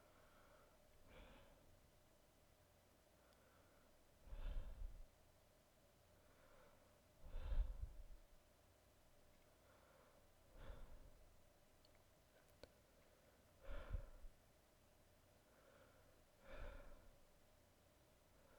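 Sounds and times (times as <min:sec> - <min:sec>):
breathing: 0:00.0 - 0:01.7, 0:03.2 - 0:05.1, 0:06.1 - 0:08.2, 0:09.5 - 0:11.2, 0:12.4 - 0:14.3, 0:15.4 - 0:17.2, 0:18.4 - 0:18.5.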